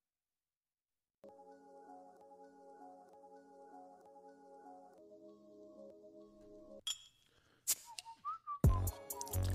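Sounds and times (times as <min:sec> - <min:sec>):
person whistling: 0:07.7 - 0:09.4.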